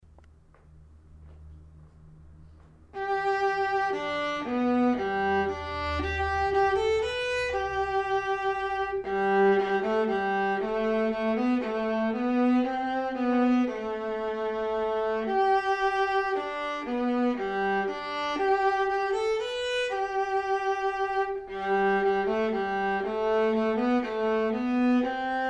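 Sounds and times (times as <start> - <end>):
viola minuet: 2.9 - 25.4.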